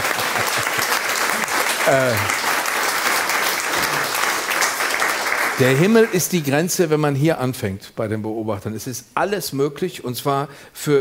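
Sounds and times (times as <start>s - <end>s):
laughter: 0.0s - 2.4s
audience applause: 0.0s - 6.4s
speech: 1.8s - 2.4s, 5.6s - 10.9s.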